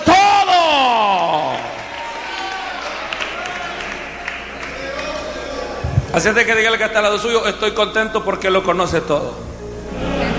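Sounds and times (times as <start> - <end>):
crowd audience applauding: 0.6 - 6.3
speech: 6.2 - 9.5.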